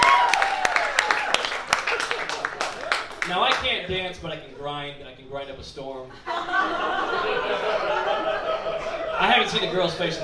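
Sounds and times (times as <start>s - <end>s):
people whooping: 0.0s - 3.2s
audience clapping in agreement: 0.0s - 3.9s
crowd noise: 0.0s - 10.2s
speech: 3.3s - 8.5s, 9.2s - 10.2s
laughter: 6.1s - 10.2s.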